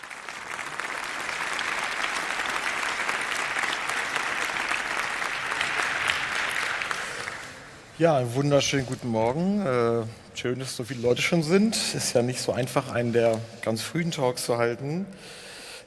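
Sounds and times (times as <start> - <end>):
audience applause: 0.0 - 7.9
speech: 8.0 - 15.4.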